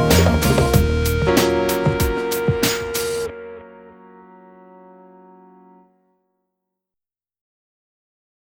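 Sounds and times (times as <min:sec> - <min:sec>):
jazzy hip-hop remix: 0:00.0 - 0:04.7.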